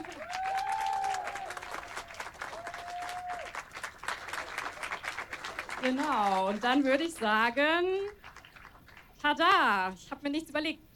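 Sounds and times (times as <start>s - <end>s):
cheers: 0.0s - 5.6s
audience applause: 0.0s - 9.2s
speech: 5.8s - 8.2s, 9.2s - 10.8s.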